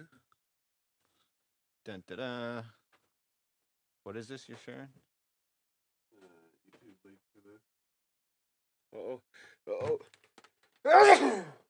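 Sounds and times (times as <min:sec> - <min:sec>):
speech: 0:01.8 - 0:02.8, 0:04.0 - 0:05.1, 0:08.9 - 0:10.2, 0:10.8 - 0:11.6
sneeze: 0:10.9 - 0:11.6.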